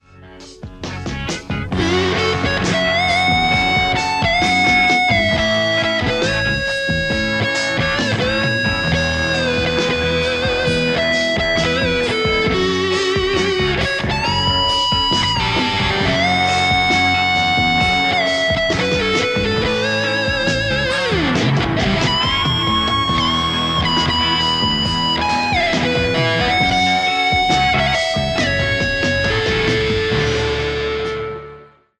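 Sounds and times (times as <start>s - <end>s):
Les Paul electric guitar: 0.0s - 31.9s.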